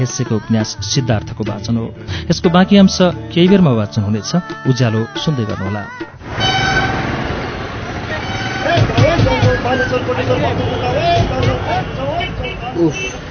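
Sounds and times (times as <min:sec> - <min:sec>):
speech: 0:00.0 - 0:06.7, 0:08.6 - 0:13.3
car horns tooting and honking on a busy city street: 0:06.2 - 0:13.3.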